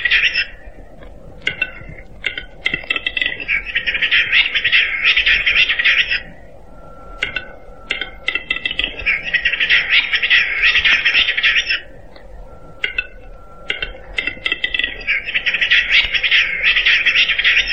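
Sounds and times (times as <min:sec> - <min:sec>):
capercaillie calls: 0:00.0 - 0:17.7.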